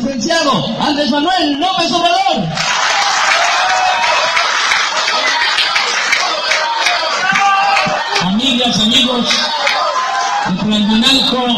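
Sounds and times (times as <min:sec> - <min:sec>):
speech: 0:00.3 - 0:02.9, 0:08.6 - 0:09.7, 0:10.5 - 0:11.5
crowd applause: 0:02.6 - 0:11.0.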